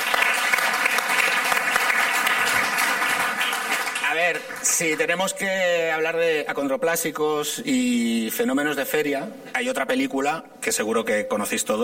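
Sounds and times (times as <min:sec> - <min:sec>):
applause: 0:00.0 - 0:05.3
speech: 0:04.2 - 0:11.8.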